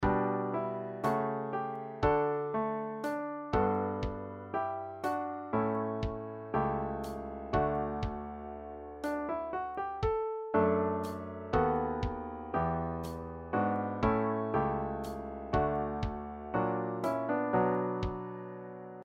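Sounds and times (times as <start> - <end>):
piano: 0.0 - 19.0
drum: 7.6 - 8.2, 11.6 - 12.2, 15.6 - 16.2.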